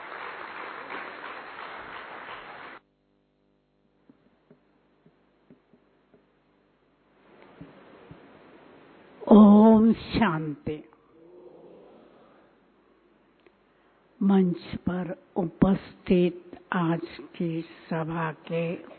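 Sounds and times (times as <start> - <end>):
assembly clapping to welcome a speaker at a Brahma Kumaris gathering: 0.0 - 2.8
speech: 9.3 - 11.0, 14.3 - 18.9.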